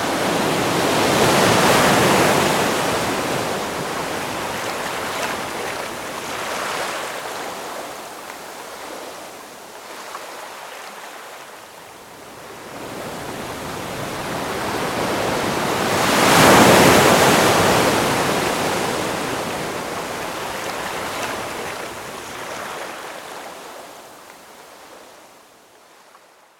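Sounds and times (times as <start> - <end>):
ocean waves: 0.0 - 26.3.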